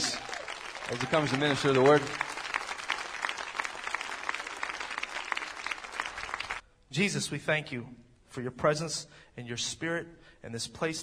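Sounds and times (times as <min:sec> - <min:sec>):
standing church congregation applauding to welcome a guest preacher: 0:00.0 - 0:06.6
speech: 0:00.9 - 0:02.3, 0:06.9 - 0:11.0.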